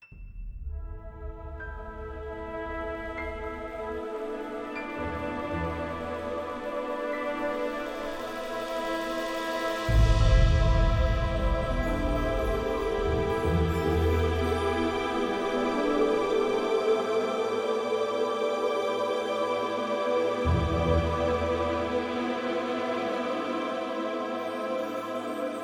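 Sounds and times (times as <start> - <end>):
mountains music: 0.0 - 25.6.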